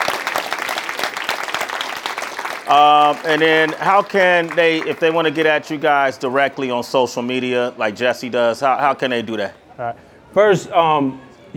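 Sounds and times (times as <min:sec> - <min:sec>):
audience applause: 0:00.0 - 0:06.8
speech: 0:02.7 - 0:11.5.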